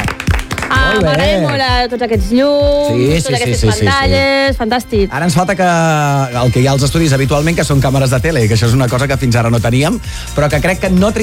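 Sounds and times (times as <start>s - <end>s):
applause in radio studio: 0.0s - 1.8s
speech: 0.7s - 11.2s.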